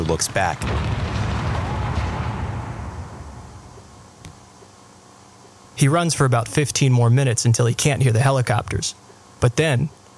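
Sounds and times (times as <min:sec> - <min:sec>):
gunfire barrage: 0:00.0 - 0:04.1
speech: 0:00.1 - 0:01.2, 0:05.8 - 0:10.1.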